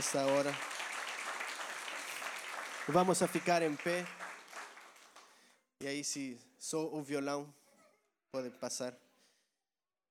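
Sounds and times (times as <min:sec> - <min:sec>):
speech: 0:00.0 - 0:00.7, 0:02.9 - 0:04.2, 0:05.8 - 0:07.6, 0:08.3 - 0:09.0
audience applause: 0:00.0 - 0:05.3.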